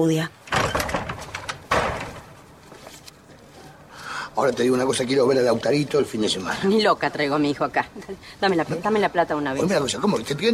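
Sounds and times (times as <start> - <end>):
speech: 0.0 - 0.4, 4.4 - 10.5
door being unlatched and opened: 0.4 - 2.5.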